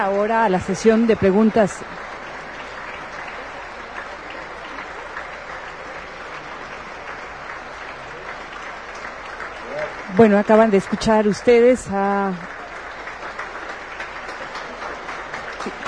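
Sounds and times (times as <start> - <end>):
speech: 0.0 - 2.0, 10.2 - 12.5
audience applause: 0.0 - 15.8.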